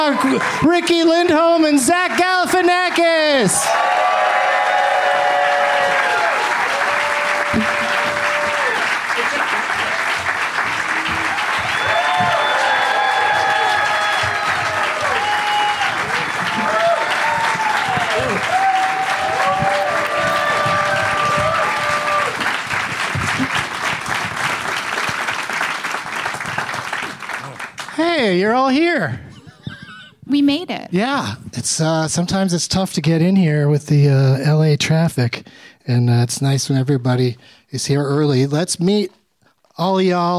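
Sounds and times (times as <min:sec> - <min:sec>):
large audience applause: 0:00.0 - 0:28.7
speech: 0:00.1 - 0:04.4, 0:28.3 - 0:29.2, 0:30.4 - 0:39.2, 0:39.8 - 0:40.3
whoops and cheers: 0:03.6 - 0:09.0, 0:10.8 - 0:22.5.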